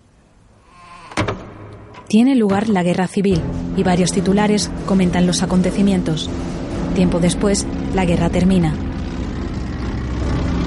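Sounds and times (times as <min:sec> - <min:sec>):
speech: 0:02.1 - 0:08.9
light aircraft engine droning overhead: 0:03.4 - 0:10.6.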